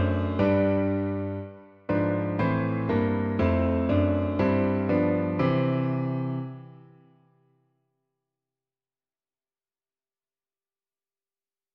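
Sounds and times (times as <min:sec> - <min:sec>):
piano: 0:00.0 - 0:07.6.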